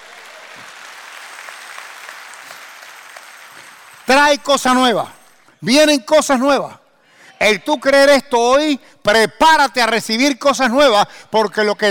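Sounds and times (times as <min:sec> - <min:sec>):
audience applauding: 0:00.0 - 0:04.1
speech: 0:04.1 - 0:06.8, 0:07.4 - 0:11.8.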